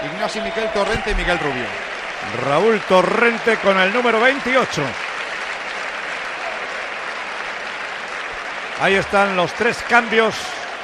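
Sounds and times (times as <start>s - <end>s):
stadium crowd applauding: 0.0s - 10.8s
speech: 0.2s - 5.0s, 8.8s - 10.6s.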